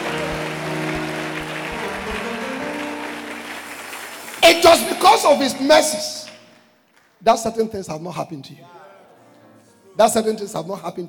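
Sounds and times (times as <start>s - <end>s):
audience clapping hands: 0.0s - 7.2s
speech: 4.5s - 6.3s, 7.2s - 8.9s, 10.0s - 11.0s.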